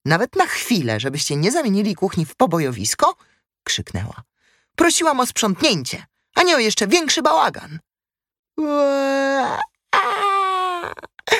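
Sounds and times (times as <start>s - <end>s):
speech: 0.0s - 7.9s, 8.6s - 10.2s
small child bursting into tears: 8.6s - 11.3s.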